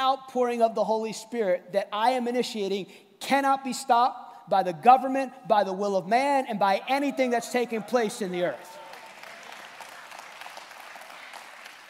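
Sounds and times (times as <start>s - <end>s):
speech: 0.1s - 8.8s
scattered audience clapping: 8.7s - 11.8s.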